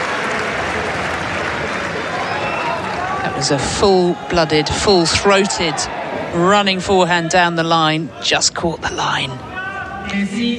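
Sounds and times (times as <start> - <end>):
crowd applause: 0.0 - 6.6
speech: 3.4 - 10.5.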